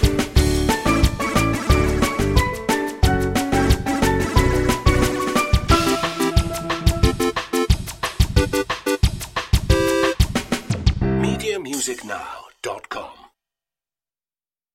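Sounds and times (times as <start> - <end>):
retro video game bubbles music: 0.0 - 11.7.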